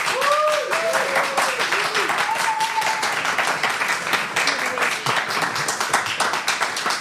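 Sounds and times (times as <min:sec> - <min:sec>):
people whooping and cheering: 0:00.0 - 0:03.5
audience applause: 0:00.0 - 0:06.9.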